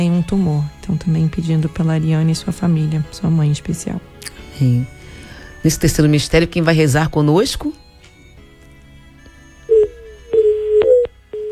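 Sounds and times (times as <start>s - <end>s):
speech: 0.0s - 5.0s, 5.6s - 7.8s
phone line dropout beeps during a group rosary prayer call: 9.6s - 11.5s.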